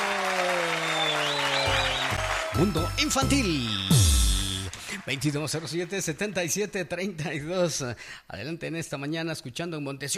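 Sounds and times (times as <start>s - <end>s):
audience applause: 0.0s - 3.3s, 4.6s - 6.4s
speech: 2.6s - 4.2s, 5.0s - 10.1s.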